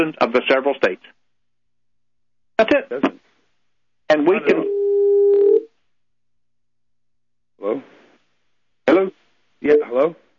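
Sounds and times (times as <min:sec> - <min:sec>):
speech: 0:00.0 - 0:01.2, 0:02.6 - 0:03.2, 0:04.1 - 0:04.8, 0:07.6 - 0:08.0, 0:08.9 - 0:10.2
beep on a telephone line: 0:04.5 - 0:05.7.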